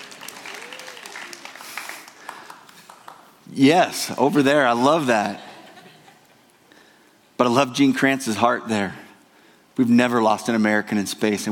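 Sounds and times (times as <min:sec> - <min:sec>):
audience clapping: 0:00.0 - 0:03.5
speech: 0:03.6 - 0:05.5, 0:07.4 - 0:09.0, 0:09.8 - 0:11.5
laughter: 0:05.2 - 0:06.6.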